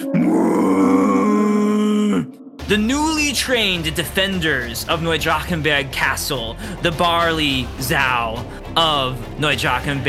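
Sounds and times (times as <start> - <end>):
monstrous pig creature bellowing a challenge: 0.0 - 2.6
speech: 2.7 - 10.0.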